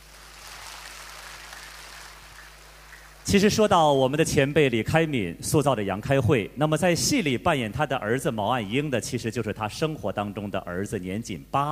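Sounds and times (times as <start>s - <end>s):
audience applause: 0.0s - 3.3s
speech: 3.3s - 11.7s.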